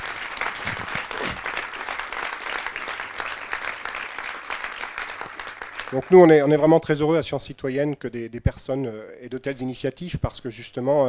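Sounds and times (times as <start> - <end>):
crowd applause: 0.0 - 6.7
speech: 5.9 - 11.0.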